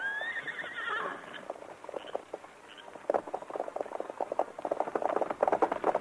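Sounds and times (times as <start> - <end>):
horses Silver and Scout whinnying: 0.0 - 2.2
hooves of horses Silver and Scout clip-clopping: 0.0 - 5.9.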